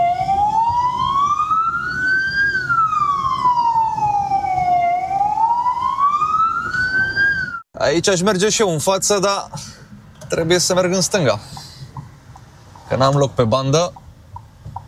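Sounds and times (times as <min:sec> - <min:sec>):
ambulance or police siren in traffic: 0:00.0 - 0:07.6
speech: 0:07.9 - 0:09.7, 0:10.3 - 0:11.6, 0:12.9 - 0:14.0.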